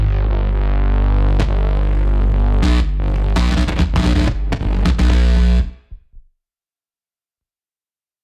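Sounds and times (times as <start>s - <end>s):
lo-fi bass buzzer: 0.0s - 5.9s.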